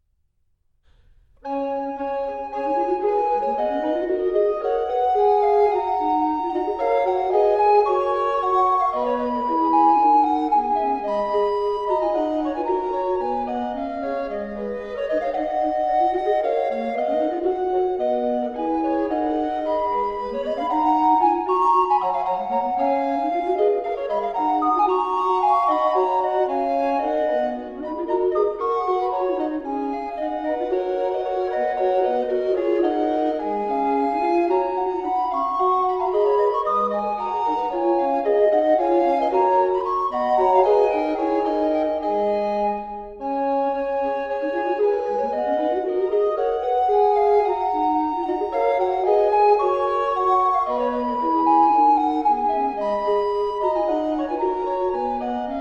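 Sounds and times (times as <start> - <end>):
recorder quartet: 0.8 - 55.5.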